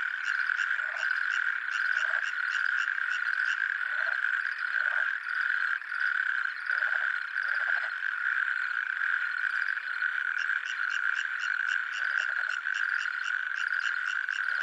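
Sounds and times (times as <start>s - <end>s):
natterjack toad calling in France: 0.0s - 14.6s.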